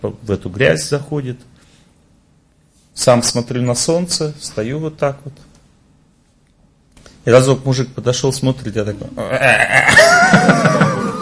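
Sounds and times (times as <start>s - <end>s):
speech: 0.0s - 1.6s, 3.0s - 5.5s, 7.2s - 10.8s
voice imitating a frog croak: 9.2s - 10.3s
laughter: 9.4s - 11.2s.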